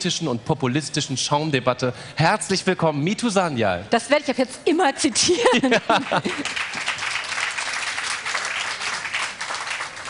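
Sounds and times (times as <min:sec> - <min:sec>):
speech: 0:00.0 - 0:06.9
laughter: 0:05.2 - 0:06.7
audience clapping at a book fair: 0:05.6 - 0:10.0.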